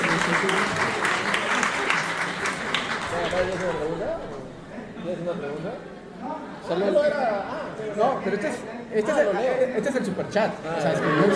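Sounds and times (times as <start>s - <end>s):
applause: 0.0s - 4.4s
speech: 3.4s - 4.3s, 5.0s - 11.3s.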